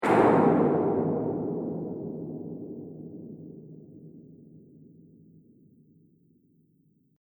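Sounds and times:
distant impact: 0.0s - 5.4s.

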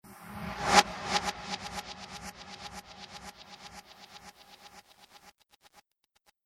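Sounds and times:
fast repeating space swish: 0.7s - 5.3s.

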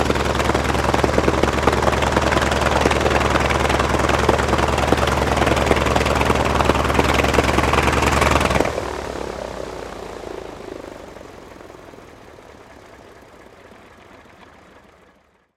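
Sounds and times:
T-28D Trojan aircraft taxiing and shutting down: 0.0s - 15.5s.

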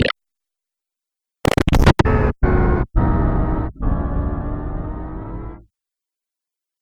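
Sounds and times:
dubstep glitches: 1.5s - 5.6s.

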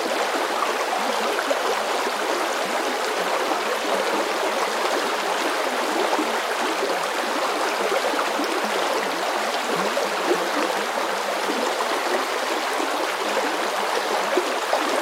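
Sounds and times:
shallow creek water flowing current: 0.0s - 14.9s.

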